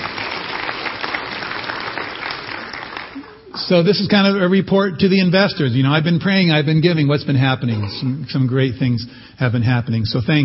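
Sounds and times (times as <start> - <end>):
audience clapping: 0.0 - 3.9
speech: 3.7 - 10.4.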